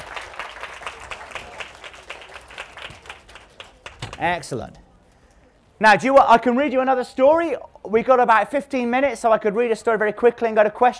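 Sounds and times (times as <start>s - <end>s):
children clapping: 0.0s - 4.2s
speech: 4.2s - 4.8s, 5.8s - 10.9s.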